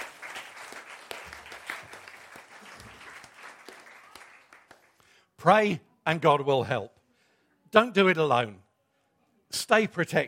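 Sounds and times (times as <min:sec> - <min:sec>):
audience applause: 0:00.0 - 0:05.1
speech: 0:05.4 - 0:07.0, 0:07.7 - 0:08.6, 0:09.5 - 0:10.2.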